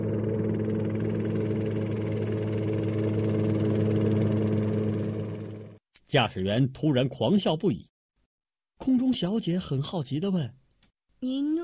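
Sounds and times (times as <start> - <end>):
airplane flying overhead: 0.0 - 5.8
speech: 6.1 - 7.9, 8.8 - 10.6, 11.2 - 11.6.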